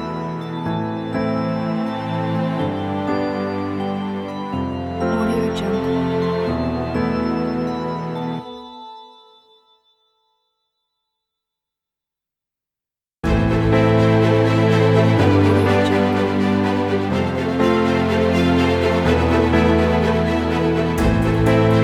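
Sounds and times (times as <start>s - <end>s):
exciting orchestral music: 0.0s - 8.4s, 13.2s - 21.8s.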